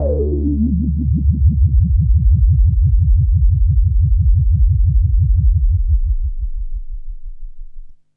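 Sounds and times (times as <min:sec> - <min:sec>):
drum and bass bass lick: 0:00.0 - 0:08.0.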